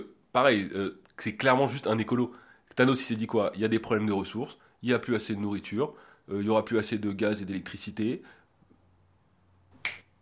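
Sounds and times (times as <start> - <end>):
speech: 0.4 - 8.4
finger snap: 9.8 - 10.2.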